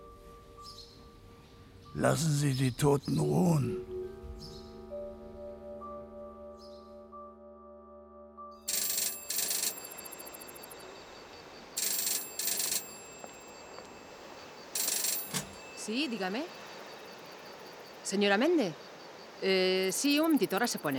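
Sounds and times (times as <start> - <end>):
speech: 2.0 - 3.9, 15.9 - 16.6, 18.1 - 18.8, 19.4 - 20.9
telephone bell ringing: 8.6 - 17.2.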